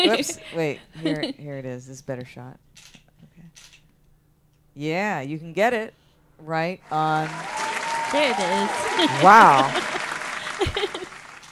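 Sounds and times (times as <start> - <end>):
laughter: 0.0 - 1.3, 7.1 - 11.3
speech: 0.0 - 3.0, 4.8 - 10.0
audience applause: 6.9 - 11.4.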